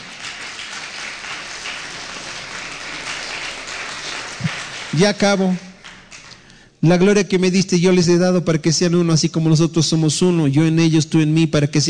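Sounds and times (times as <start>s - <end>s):
audience applause: 0.0s - 6.5s
speech: 5.0s - 5.7s, 6.8s - 11.8s.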